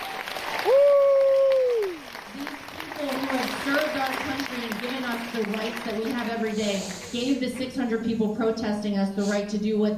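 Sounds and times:
audience applause: 0:00.0 - 0:06.6
speech: 0:05.4 - 0:09.9.

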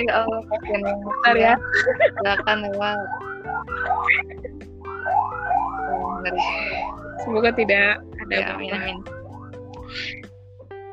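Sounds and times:
speech: 0:00.0 - 0:04.7, 0:06.2 - 0:09.2, 0:09.9 - 0:10.3
ambulance siren wailing: 0:00.0 - 0:10.3
laughter: 0:00.3 - 0:02.8, 0:03.5 - 0:04.6.

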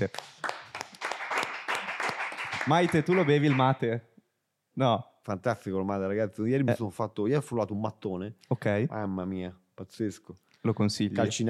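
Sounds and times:
speech: 0:00.0 - 0:00.4, 0:02.6 - 0:04.1, 0:04.8 - 0:11.4
audience applause: 0:00.0 - 0:03.8.

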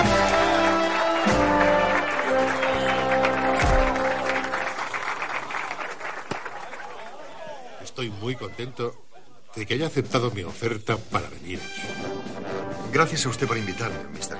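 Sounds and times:
band playing brass-heavy music with sustained chords: 0:00.0 - 0:04.9, 0:11.1 - 0:14.3
steady applause from a group of people: 0:00.0 - 0:07.7
speech: 0:08.3 - 0:14.3.

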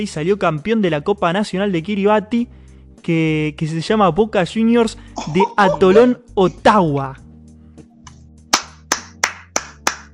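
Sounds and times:
speech: 0:00.0 - 0:07.2
applause clapping: 0:08.5 - 0:10.1.

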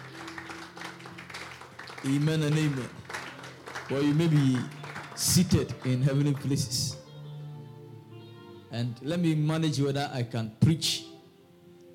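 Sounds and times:
crowd clapping together: 0:00.0 - 0:07.0
speech: 0:02.0 - 0:03.0, 0:03.9 - 0:07.0, 0:08.7 - 0:11.1.

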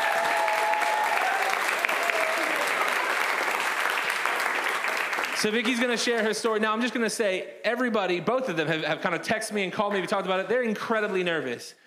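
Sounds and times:
church congregation applauding during a Baptism Sunday service: 0:00.0 - 0:06.5
speech: 0:05.4 - 0:11.8.

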